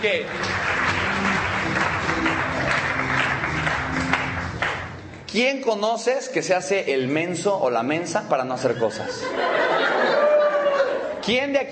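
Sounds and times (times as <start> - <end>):
speech: 0.0 - 0.7, 5.3 - 10.0, 11.2 - 11.6
sustained audience applause: 0.0 - 5.0
laughter: 8.6 - 11.2.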